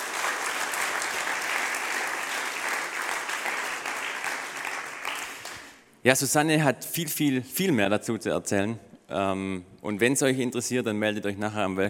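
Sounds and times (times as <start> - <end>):
crowd applause: 0.0 - 5.8
speech: 6.0 - 11.8.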